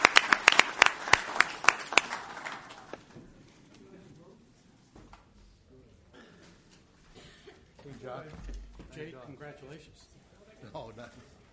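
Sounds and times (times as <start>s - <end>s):
audience applause: 0.0s - 3.0s
speech: 8.1s - 11.4s.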